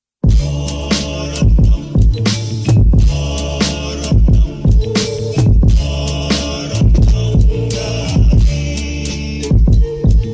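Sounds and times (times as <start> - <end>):
war drums: 0.3 - 3.3, 4.1 - 6.0, 6.8 - 8.6, 9.5 - 10.3.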